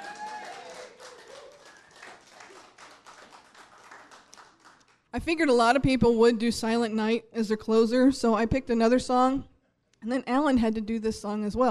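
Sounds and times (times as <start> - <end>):
audience applause: 0.0 - 5.0
speech: 5.2 - 11.6.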